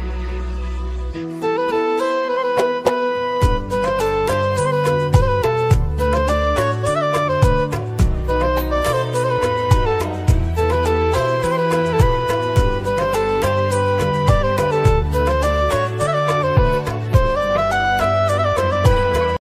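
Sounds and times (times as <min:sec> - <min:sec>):
flute ringtone: 0:00.2 - 0:19.3.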